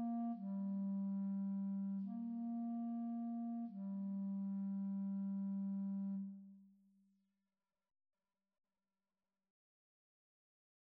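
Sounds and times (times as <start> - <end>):
clarinet duet: 0.0 - 6.5.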